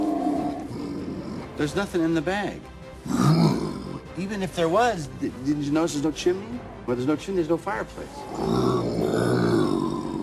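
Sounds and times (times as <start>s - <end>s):
growling: 0.0s - 1.6s, 3.0s - 4.1s, 8.0s - 10.2s
speech: 1.6s - 3.4s, 4.2s - 8.9s.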